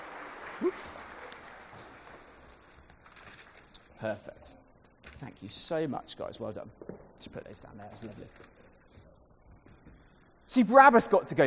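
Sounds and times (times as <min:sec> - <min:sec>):
round of applause: 0:00.0 - 0:02.6
speech: 0:00.6 - 0:01.0, 0:04.0 - 0:04.6, 0:05.2 - 0:08.6, 0:10.5 - 0:11.4.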